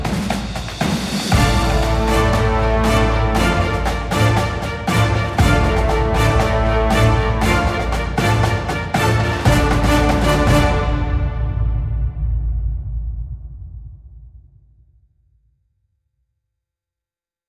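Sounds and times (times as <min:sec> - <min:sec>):
Soviet march: 0:00.0 - 0:12.2.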